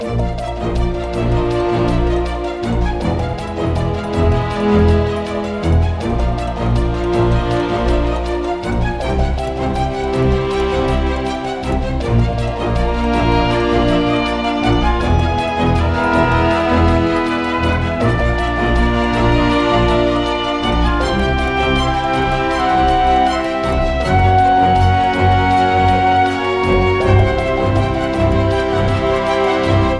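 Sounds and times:
game menu store music loop: 0.0 - 29.9.

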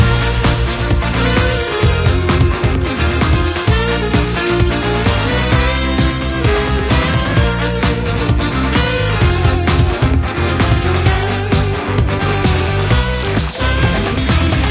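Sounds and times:
fight music loop: 0.0 - 14.6.

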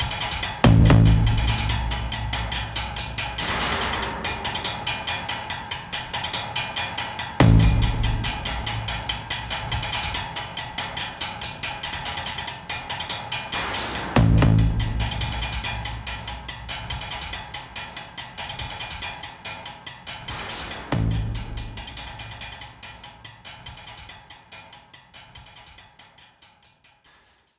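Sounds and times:
drum music for a sniper ambush: 0.0 - 11.6, 13.5 - 19.1, 20.2 - 23.1.

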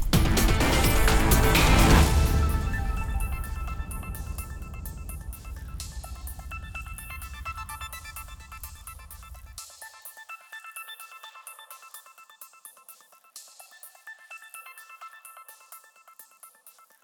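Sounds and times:
gameplay victory intro music: 0.1 - 9.3.

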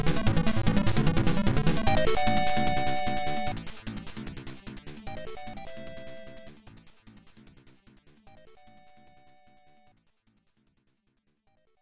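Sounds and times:
round background music: 0.0 - 6.7.

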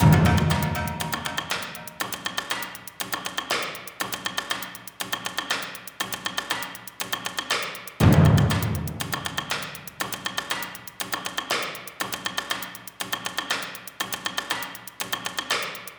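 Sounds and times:
percussion loop: 0.0 - 15.9.

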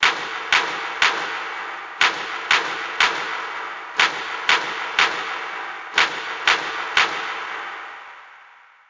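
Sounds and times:
hand clap: 0.0 - 7.9.

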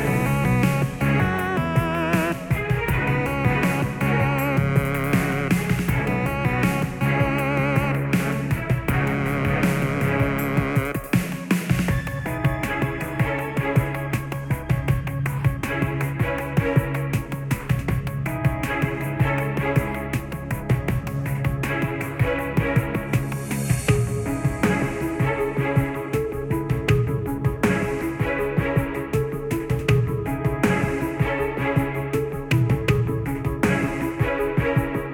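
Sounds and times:
low filtered sneaking background music: 0.0 - 35.1.

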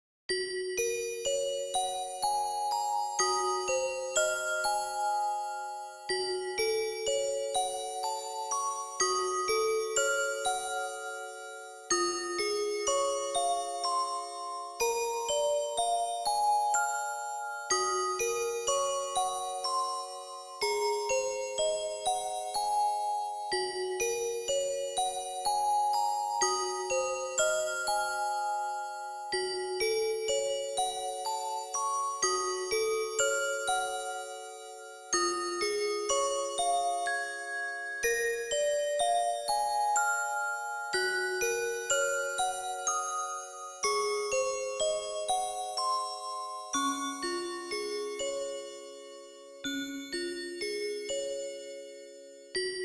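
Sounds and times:
music box: 0.5 - 52.8.

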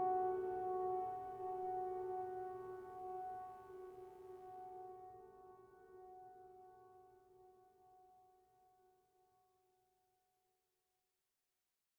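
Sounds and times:
piano theme: 0.0 - 6.7.

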